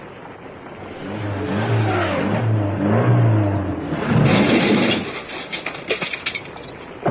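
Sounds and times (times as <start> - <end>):
car engine revving to pull free: 0.8 - 5.1
metallic clanks and jolts: 3.8 - 7.0.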